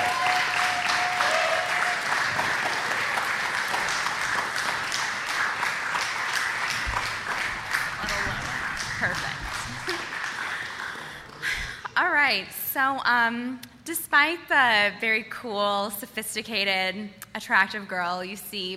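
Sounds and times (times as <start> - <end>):
audience clapping: 0.0 - 11.9
laughter: 8.0 - 11.8
speech: 12.3 - 18.7.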